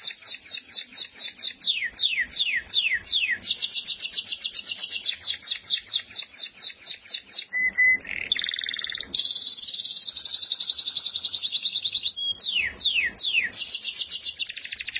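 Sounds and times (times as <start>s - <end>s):
canary-type buzzy trill: 0.0s - 14.9s.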